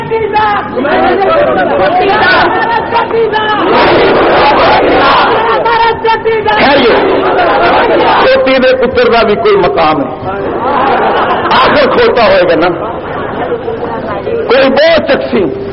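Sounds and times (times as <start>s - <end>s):
speech: 0.1s - 4.5s, 6.1s - 15.7s
crowd chanting slogans in reply: 0.7s - 8.5s
laughter: 0.9s - 2.9s, 10.3s - 14.5s.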